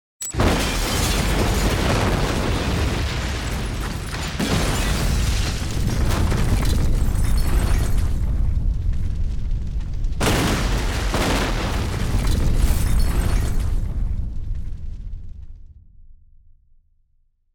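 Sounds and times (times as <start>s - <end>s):
explosion: 0.3s - 16.5s.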